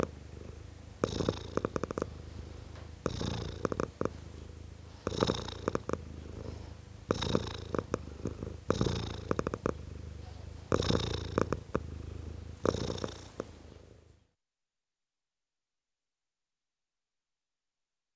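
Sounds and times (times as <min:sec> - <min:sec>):
domestic cat purring: 0:00.0 - 0:14.2.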